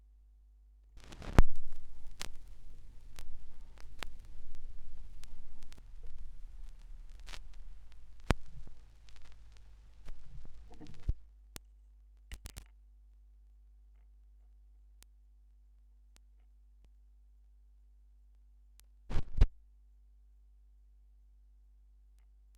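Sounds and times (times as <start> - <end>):
vinyl record noise: 1.0 - 11.7, 12.3 - 12.6, 19.1 - 19.5.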